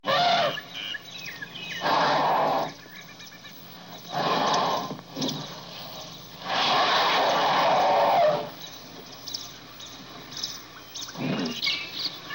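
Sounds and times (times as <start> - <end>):
elephant trumpeting and rumbling: 0.0 - 0.7, 1.7 - 2.9, 3.8 - 8.7, 11.1 - 12.0.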